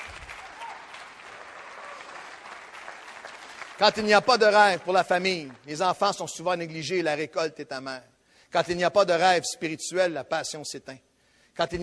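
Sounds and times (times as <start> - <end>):
crowd clapping: 0.0 - 6.2
speech: 3.8 - 11.8.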